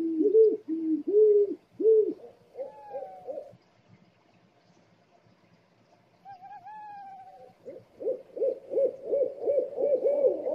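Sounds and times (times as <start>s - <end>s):
owl hooting: 0.0s - 3.5s, 6.2s - 10.5s.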